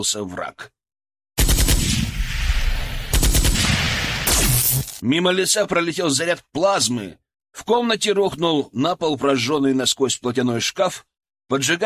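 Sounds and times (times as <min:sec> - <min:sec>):
speech: 0:00.0 - 0:00.8, 0:04.7 - 0:11.8
machine gun burst: 0:01.4 - 0:02.2, 0:03.0 - 0:05.0.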